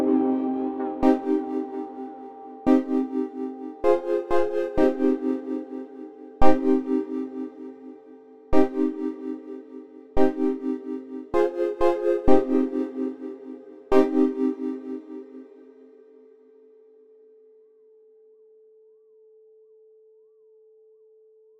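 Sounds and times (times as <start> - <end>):
synth loop: 1.0 - 7.8, 8.6 - 15.4.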